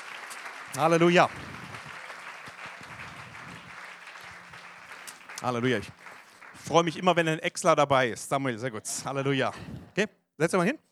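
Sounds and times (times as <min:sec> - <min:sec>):
audience applauding: 0:00.0 - 0:07.5
speech: 0:00.7 - 0:01.5, 0:05.4 - 0:06.0, 0:06.6 - 0:10.9.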